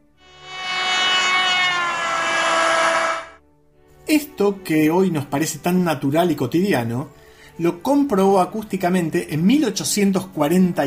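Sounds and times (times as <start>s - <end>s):
passing horn or siren dropping in pitch: 0.0s - 3.4s
speech: 4.1s - 10.8s.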